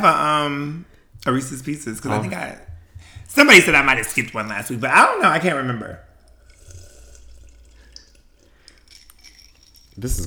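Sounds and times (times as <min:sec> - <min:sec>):
speech: 0:00.0 - 0:06.1, 0:10.0 - 0:10.2
person sipping the last of a drink: 0:06.0 - 0:10.2.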